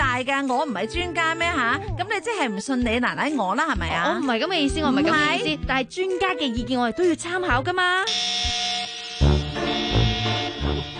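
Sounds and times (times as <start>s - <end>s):
speech: 0.2s - 8.6s
alarm sounding from robot BB: 8.1s - 10.9s.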